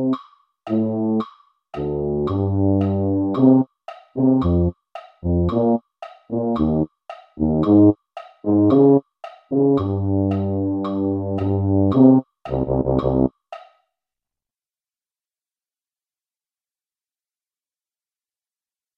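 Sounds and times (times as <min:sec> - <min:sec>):
tuba: 0:00.0 - 0:01.2, 0:01.8 - 0:13.3.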